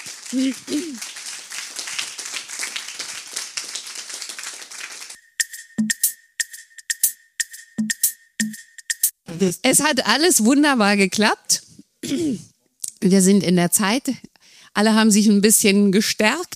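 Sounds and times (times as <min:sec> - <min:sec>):
audience applause: 0:00.0 - 0:05.2
speech: 0:00.3 - 0:01.2, 0:09.4 - 0:16.5.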